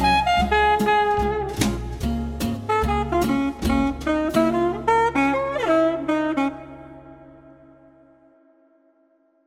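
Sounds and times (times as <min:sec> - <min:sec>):
happy music: 0:00.0 - 0:06.6.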